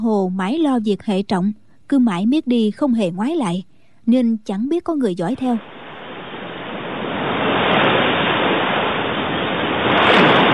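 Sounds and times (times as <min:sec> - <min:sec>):
speech: 0:00.0 - 0:05.8
waves crashing against a rocky shore: 0:05.6 - 0:10.5.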